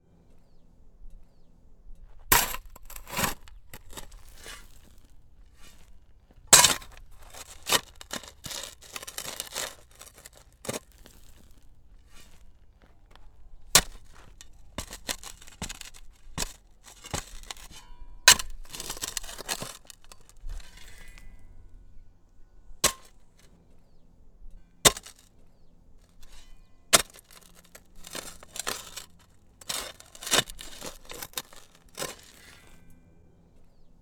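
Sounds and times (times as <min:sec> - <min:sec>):
shovel digging: 0:02.3 - 0:05.9, 0:06.5 - 0:12.4, 0:13.7 - 0:21.3, 0:22.8 - 0:23.2, 0:24.8 - 0:25.3, 0:26.2 - 0:32.9.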